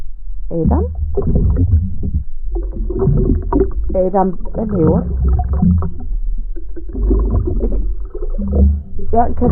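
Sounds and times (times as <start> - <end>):
person blowing bubbles with head in bucket of water: 0.6 - 9.5
speech: 4.0 - 6.0, 9.1 - 9.5.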